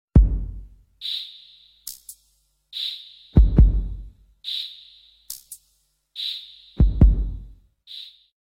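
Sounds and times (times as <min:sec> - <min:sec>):
heartbeat: 0:00.2 - 0:00.6, 0:03.4 - 0:04.1, 0:06.8 - 0:07.6.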